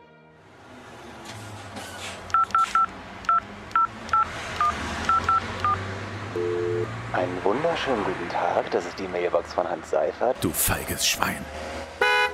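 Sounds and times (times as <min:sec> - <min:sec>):
telephone dialing a number: 0:02.3 - 0:05.8
speech: 0:07.1 - 0:11.8.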